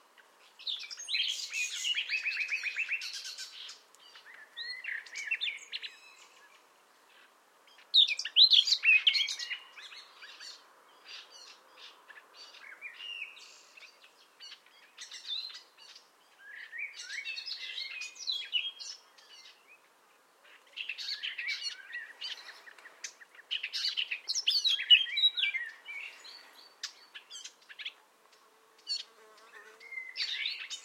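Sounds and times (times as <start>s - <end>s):
common nightingale song: 0.0s - 30.8s
faint hiss: 0.0s - 30.8s.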